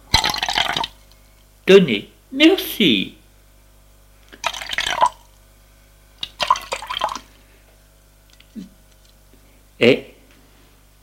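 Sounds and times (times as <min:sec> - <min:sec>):
drink being poured into glasses: 0:00.2 - 0:01.0, 0:04.4 - 0:05.3, 0:06.2 - 0:07.3
speech: 0:01.7 - 0:03.2, 0:09.8 - 0:10.0.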